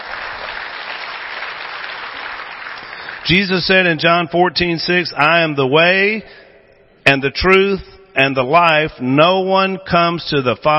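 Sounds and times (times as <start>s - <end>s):
audience applause: 0.0s - 3.3s
speech: 3.3s - 6.4s, 7.1s - 10.7s.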